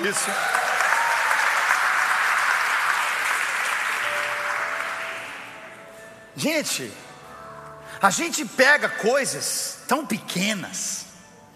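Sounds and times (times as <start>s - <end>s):
speech: 0.0s - 0.7s, 6.4s - 7.1s, 8.0s - 11.1s
audience applauding: 0.0s - 5.6s.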